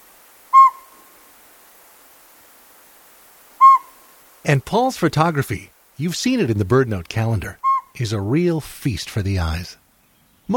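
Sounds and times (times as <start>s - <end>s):
northern pygmy owl whistled toots: 0.5s - 1.0s, 3.6s - 4.0s, 7.6s - 8.0s
speech: 4.4s - 9.8s.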